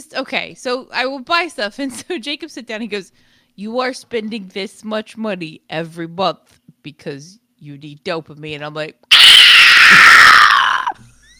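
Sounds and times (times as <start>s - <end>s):
speech: 0.0s - 9.2s
person screaming into a microphone: 9.1s - 11.0s.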